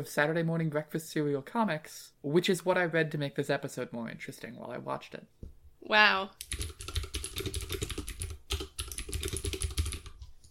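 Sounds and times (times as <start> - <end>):
speech: 0.0 - 6.8
rapid typing on a computer keyboard: 6.4 - 10.5.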